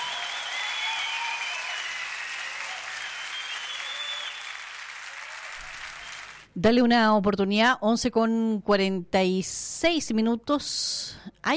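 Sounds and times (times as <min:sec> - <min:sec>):
audience applause: 0:00.0 - 0:06.5
speech: 0:06.6 - 0:11.5.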